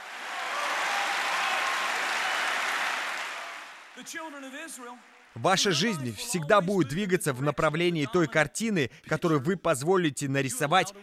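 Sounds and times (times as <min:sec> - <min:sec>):
crowd clapping: 0:00.0 - 0:05.3
speech: 0:04.0 - 0:11.0.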